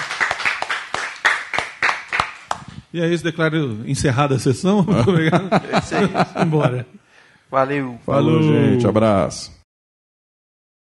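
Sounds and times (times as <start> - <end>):
applause for a sound technician at the close of a session: 0.0 - 2.8
speech: 2.9 - 9.6
laughter: 4.9 - 7.0.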